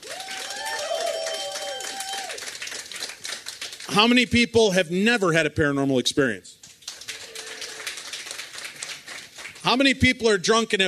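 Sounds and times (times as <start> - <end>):
audience applause: 0.0 - 4.2, 6.8 - 10.0
speech: 3.9 - 6.6, 9.7 - 10.8.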